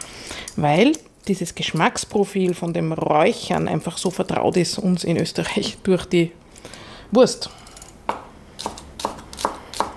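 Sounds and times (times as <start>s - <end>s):
speech: 0.6s - 7.6s
knife chopping spring onions and pickled ginger on a board: 8.1s - 9.9s.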